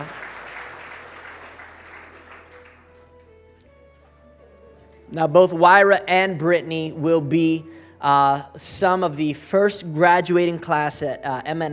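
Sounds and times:
audience clapping: 0.0s - 3.4s
speech: 5.1s - 11.7s.

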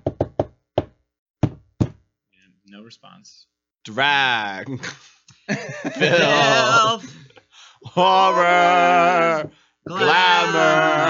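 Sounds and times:
knocking on a door: 0.0s - 2.0s
speech: 2.7s - 11.0s
laughter: 4.7s - 8.7s.

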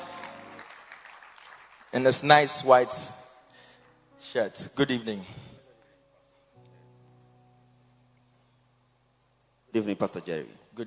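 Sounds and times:
crowd applauding: 0.0s - 2.9s
speech: 2.0s - 3.2s, 4.3s - 5.5s, 9.8s - 10.8s.

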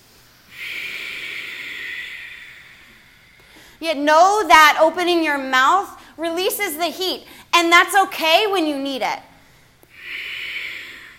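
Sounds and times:
breathing in and out through the nose with lips sealed during yoga: 0.5s - 3.8s, 9.4s - 11.1s
speech: 3.8s - 9.3s.

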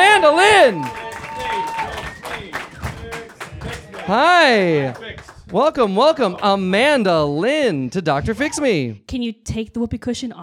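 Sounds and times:
audience round of applause: 0.0s - 6.6s
voices calling out: 0.0s - 6.6s
speech: 0.3s - 1.8s, 4.1s - 10.4s.

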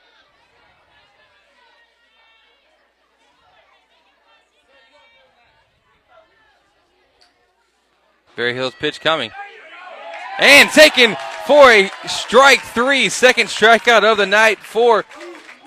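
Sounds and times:
speech: 8.4s - 9.4s, 10.4s - 15.2s
crowd of fans cheering: 8.4s - 15.6s.

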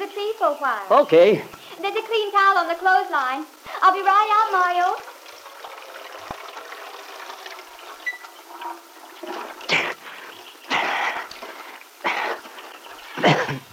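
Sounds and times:
speech: 0.2s - 5.1s
water splashing and pouring as someone washes their head outdoors: 3.8s - 13.5s.

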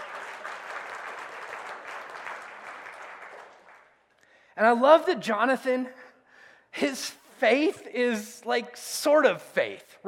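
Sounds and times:
audience clapping: 0.0s - 4.2s
speech: 4.6s - 6.0s, 6.8s - 10.0s.

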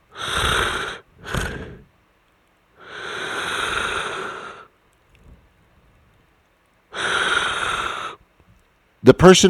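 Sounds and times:
voice imitating loud raspy snorting breaths: 0.1s - 1.9s, 2.8s - 4.7s, 7.0s - 8.2s.

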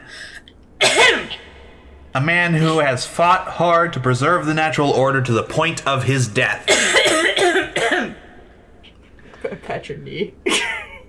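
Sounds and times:
loud explosive cough with raspy tail: 0.8s - 1.6s, 6.7s - 8.4s
speech: 2.1s - 7.0s, 9.7s - 10.8s.

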